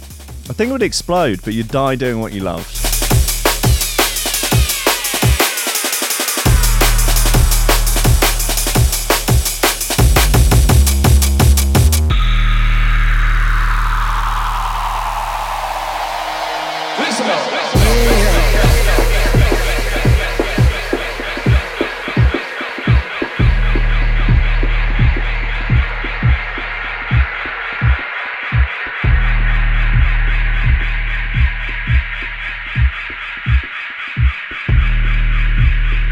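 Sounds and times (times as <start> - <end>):
drum and bass track on a chopped breakbeat: 0.0 - 36.0
speech: 0.5 - 2.8.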